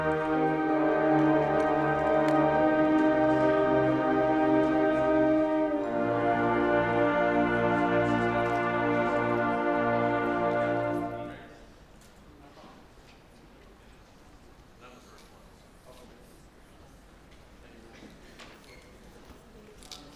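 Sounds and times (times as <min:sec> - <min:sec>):
instrumental music: 0:00.0 - 0:11.5.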